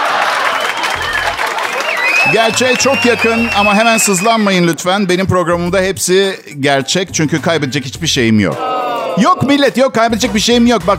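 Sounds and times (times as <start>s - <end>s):
audience applause: 0.0s - 4.5s
faint whistles and cheers: 0.0s - 4.7s
speech: 2.3s - 10.9s.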